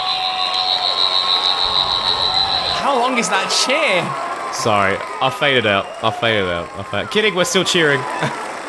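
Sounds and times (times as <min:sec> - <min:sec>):
sonic screwdriver whirring: 0:00.1 - 0:03.0
speech: 0:02.9 - 0:08.4.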